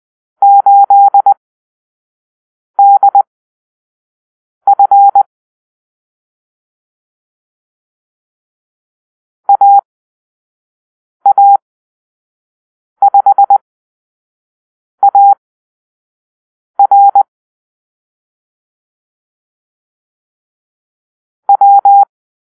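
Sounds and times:
morse code call-sign beeps: 0.4s - 1.4s, 2.8s - 3.3s, 4.7s - 5.3s, 9.5s - 9.8s, 11.3s - 11.6s, 13.0s - 13.6s, 15.0s - 15.4s, 16.8s - 17.3s, 21.5s - 22.1s.

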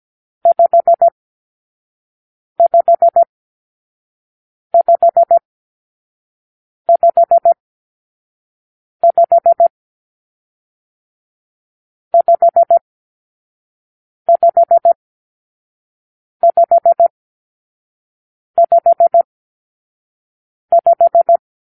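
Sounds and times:
morse code for numeral five: 0.4s - 1.1s, 2.6s - 3.3s, 4.8s - 5.4s, 6.9s - 7.6s, 9.0s - 9.7s, 12.2s - 12.8s, 14.3s - 15.0s, 16.4s - 17.1s, 18.6s - 19.3s, 20.7s - 21.4s.

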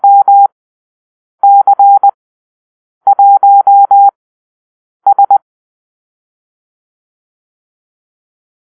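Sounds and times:
morse code call-sign drill: 0.0s - 0.5s, 1.4s - 2.2s, 3.1s - 4.1s, 5.1s - 5.4s.

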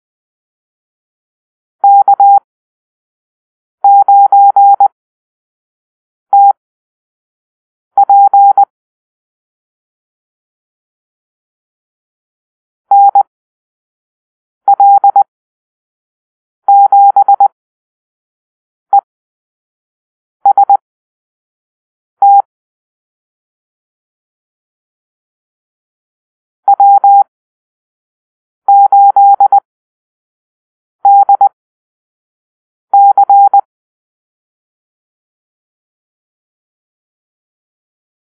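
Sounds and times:
morse code beeps in a call-sign drill: 1.8s - 2.4s, 3.8s - 4.9s, 8.0s - 8.7s, 12.9s - 13.2s, 14.7s - 15.3s, 16.7s - 17.5s, 22.2s - 22.5s, 26.7s - 27.3s, 28.7s - 29.6s, 31.0s - 31.6s, 33.0s - 33.7s.

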